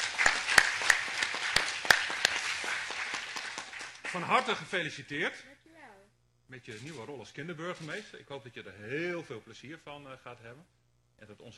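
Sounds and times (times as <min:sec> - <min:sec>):
applause: 0:00.0 - 0:04.6
speech: 0:04.1 - 0:05.6, 0:06.5 - 0:11.5.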